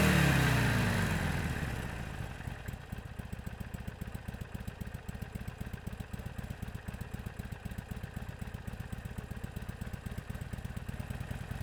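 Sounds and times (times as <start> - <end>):
Harley Davidson Sportster Iron 883 motorcycle engine accelerating on the spot: 0.0 - 1.6
Harley Davidson Sportster Iron 883 motorcycle engine shutting down: 0.0 - 2.4.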